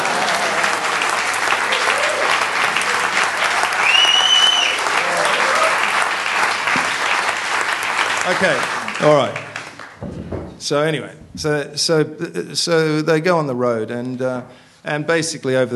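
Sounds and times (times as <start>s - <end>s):
audience clapping: 0.0s - 10.1s
speech: 8.3s - 9.4s, 10.6s - 15.7s.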